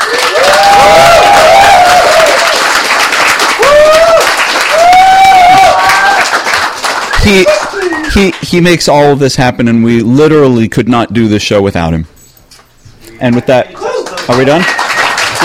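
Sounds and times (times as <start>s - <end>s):
voices whooping and cheering: 0.0s - 2.6s, 3.6s - 6.4s, 13.8s - 15.4s
audience applause: 0.0s - 8.4s, 13.2s - 15.4s
speech: 8.2s - 12.2s, 13.2s - 14.8s.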